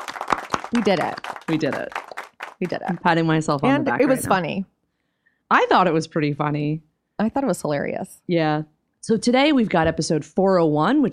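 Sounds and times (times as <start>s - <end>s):
hands clapping: 0.0s - 4.4s
speech: 0.7s - 2.0s, 2.6s - 4.7s, 5.5s - 11.1s.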